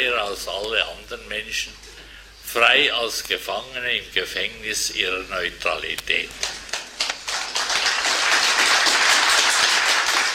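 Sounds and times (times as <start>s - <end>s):
speech: 0.0s - 6.6s
audience applause after a speech: 6.4s - 10.3s.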